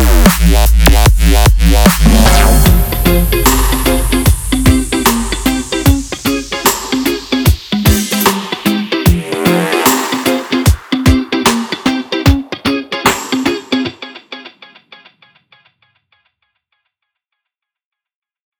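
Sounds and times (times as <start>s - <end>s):
funk bass: 0.0s - 13.7s.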